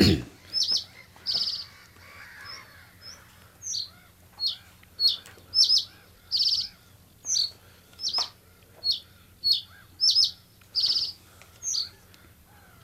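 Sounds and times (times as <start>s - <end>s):
bird singing: 0.0s - 12.8s.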